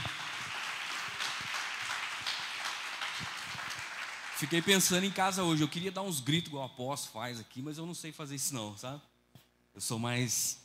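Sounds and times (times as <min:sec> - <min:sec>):
audience applause: 0:00.0 - 0:05.8
speech: 0:04.4 - 0:09.1, 0:09.8 - 0:10.6.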